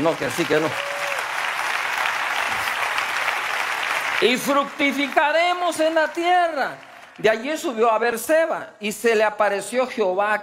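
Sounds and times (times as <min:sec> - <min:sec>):
speech: 0:00.0 - 0:00.9, 0:04.2 - 0:10.4
audience applause: 0:00.0 - 0:07.4.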